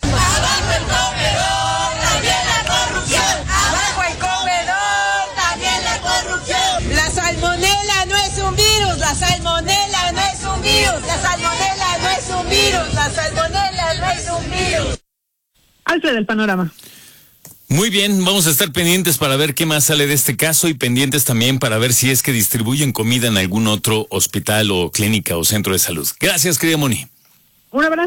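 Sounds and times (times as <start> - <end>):
protest demonstration crowd voices and shouts: 0.0 - 15.0
speech: 15.9 - 16.9, 17.7 - 28.0.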